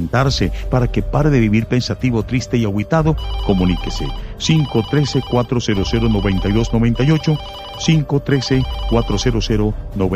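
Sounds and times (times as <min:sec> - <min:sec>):
speech: 0:00.0 - 0:10.1
telephone ringing with an incoming call to a radio call-in show: 0:03.2 - 0:09.4.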